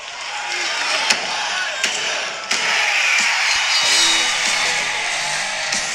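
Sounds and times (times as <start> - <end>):
dense hissing crowd roar: 0.0 - 5.9
wrestling theme music: 3.5 - 5.9.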